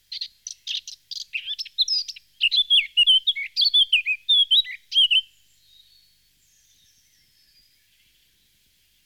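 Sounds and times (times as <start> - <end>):
Eurasian blackcap song of quick varied warbling and rich fluty whistles: 0.1 - 5.8.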